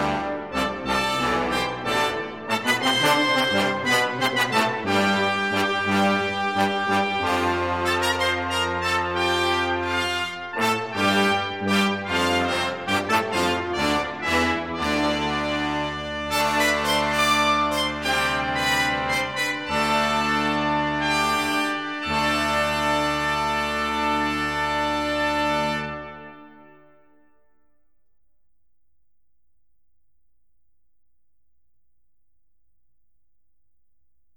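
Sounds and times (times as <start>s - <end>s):
brass ensemble playing: 0.0s - 26.8s.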